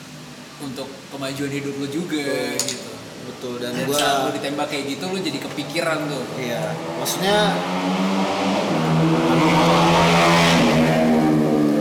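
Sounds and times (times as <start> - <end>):
speech: 0.6 - 8.5
Formula One race car engine: 5.3 - 11.7.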